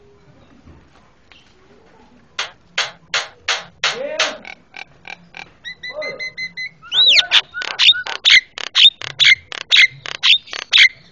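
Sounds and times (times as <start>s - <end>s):
Javan myna calls: 4.1s - 11.1s.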